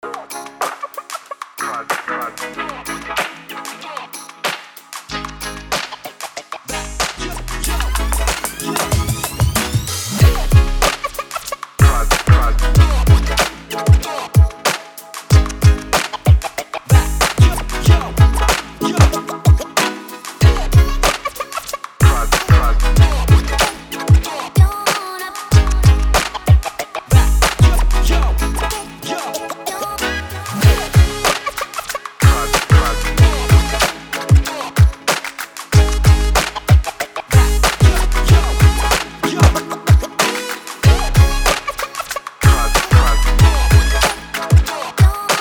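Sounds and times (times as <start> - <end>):
hip hop music: 0.0 - 45.3.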